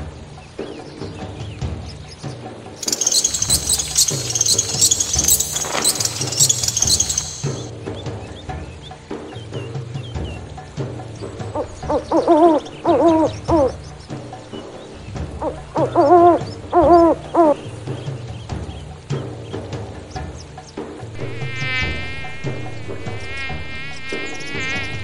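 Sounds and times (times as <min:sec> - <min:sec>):
jungle animal sounds: 0:02.8 - 0:07.7, 0:11.5 - 0:14.6, 0:15.3 - 0:17.8, 0:21.2 - 0:25.0.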